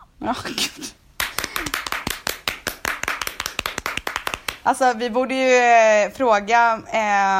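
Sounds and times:
speech: 0:00.2 - 0:01.0, 0:04.6 - 0:07.3
rapid hand clapping: 0:01.2 - 0:04.7.

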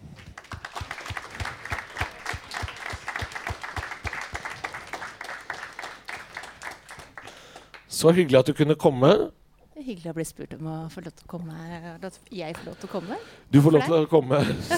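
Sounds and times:
audience applause welcoming a podcast guest: 0:00.0 - 0:08.0
speech: 0:08.0 - 0:14.7.

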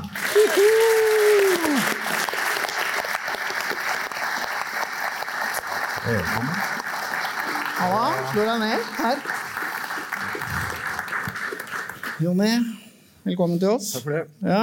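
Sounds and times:
audience applause: 0:00.0 - 0:12.6
whooping cheer: 0:00.2 - 0:02.2
speech: 0:00.4 - 0:01.2, 0:06.1 - 0:06.7, 0:07.8 - 0:09.4, 0:12.2 - 0:14.6.

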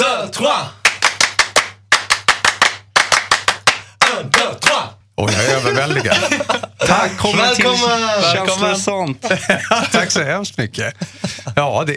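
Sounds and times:
speech: 0:00.4 - 0:00.8, 0:04.1 - 0:11.9
audience French applause: 0:00.8 - 0:04.8
laughter: 0:05.2 - 0:10.2.

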